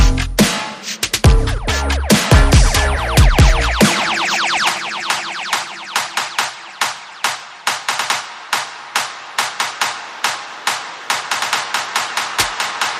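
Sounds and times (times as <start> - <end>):
bass: 0.0 - 0.5, 1.1 - 3.9
percussion: 0.0 - 12.9
sound effects: 1.3 - 7.4.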